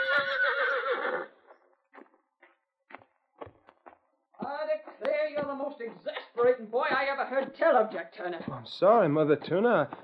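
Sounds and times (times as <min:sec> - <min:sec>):
horse Blackie whinnying: 0:00.0 - 0:01.4
soft hoof clops: 0:00.1 - 0:10.0
speech: 0:05.5 - 0:10.0.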